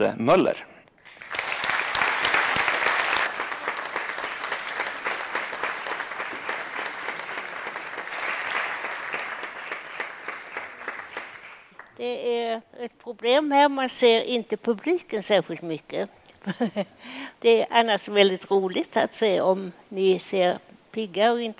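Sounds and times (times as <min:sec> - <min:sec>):
speech: 0:00.0 - 0:00.7, 0:12.0 - 0:21.5
audience applause welcoming a guest: 0:01.0 - 0:12.0.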